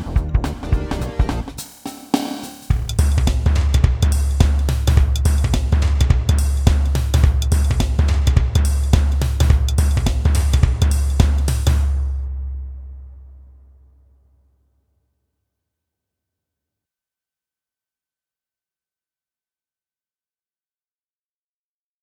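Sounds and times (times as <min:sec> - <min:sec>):
drums: 0:00.0 - 0:13.3.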